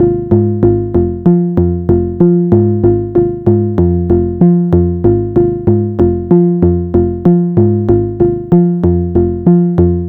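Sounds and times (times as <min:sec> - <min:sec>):
synth bass loop: 0:00.0 - 0:10.0.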